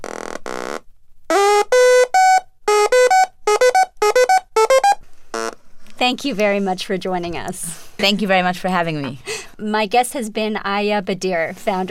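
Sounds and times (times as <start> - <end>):
synthesizer with sequencer pattern: 1.3 - 5.0
speech: 6.1 - 11.8.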